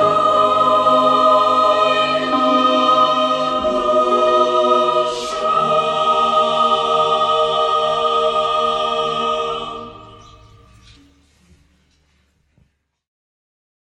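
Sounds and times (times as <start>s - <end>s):
choir singing: 0.0s - 11.0s.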